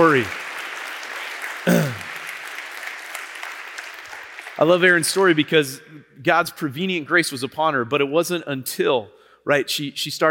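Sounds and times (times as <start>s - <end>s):
speech: 0.0s - 0.4s, 1.7s - 2.0s, 4.6s - 10.2s
audience applause: 0.0s - 4.6s.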